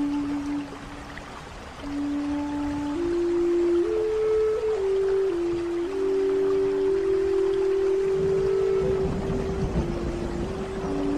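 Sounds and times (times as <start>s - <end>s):
Native American flute playing a slow low melody: 0.0s - 11.1s
steady hiss of rain: 0.0s - 11.1s
soft rumble of thunder: 8.1s - 11.1s.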